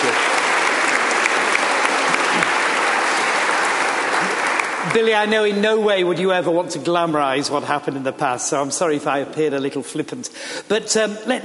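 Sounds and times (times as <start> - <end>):
audience applauding to welcome a guest: 0.0 - 5.6
speech: 4.9 - 11.4.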